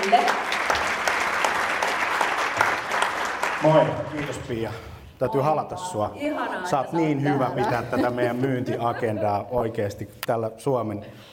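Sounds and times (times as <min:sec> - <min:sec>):
audience applause: 0:00.0 - 0:04.8
speech: 0:00.1 - 0:00.4, 0:03.6 - 0:11.3
laughter: 0:06.3 - 0:10.0.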